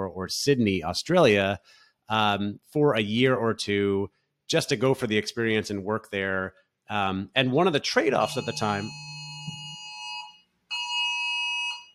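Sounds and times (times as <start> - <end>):
speech: 0.1 - 9.1
phone emergency alert going off: 8.2 - 11.8.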